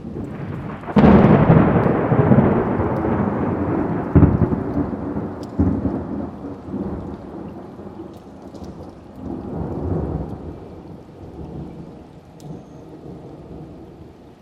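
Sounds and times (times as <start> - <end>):
thunder: 0.0 - 14.1.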